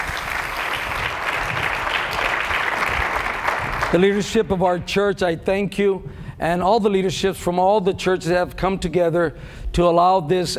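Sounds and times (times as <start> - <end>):
audience applause: 0.0 - 4.1
speech: 3.9 - 10.5.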